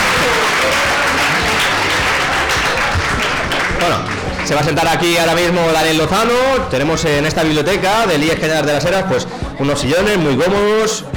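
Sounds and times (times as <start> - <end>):
audience applause: 0.0 - 5.0
speech: 3.9 - 11.1.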